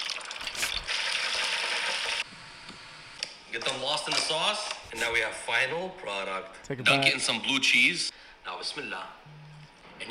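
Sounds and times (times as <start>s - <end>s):
starch-dusted chicken wings frying in oil at 350 degrees: 0.0s - 2.2s
speech: 3.6s - 9.2s.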